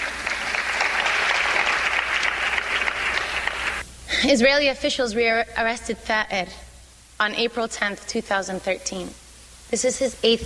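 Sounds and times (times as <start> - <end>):
hand clapping: 0.0 - 3.8
speech: 4.2 - 6.6, 7.2 - 10.4.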